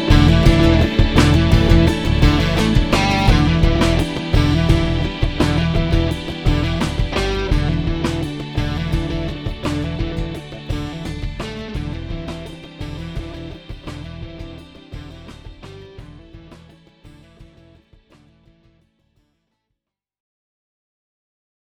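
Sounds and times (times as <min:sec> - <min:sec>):
solo mellotron loop: 0:00.0 - 0:16.2.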